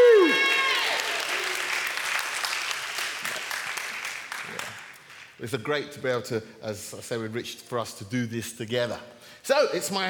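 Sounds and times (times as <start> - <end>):
person cheering: 0.0 - 1.2
audience applause for a returning member of a church group: 0.0 - 5.3
speech: 5.4 - 10.0.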